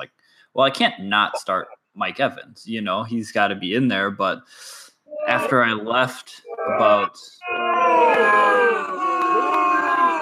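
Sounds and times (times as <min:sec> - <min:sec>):
speech: 0:00.0 - 0:09.0
live studio audience groaning in disapproval: 0:05.1 - 0:10.2.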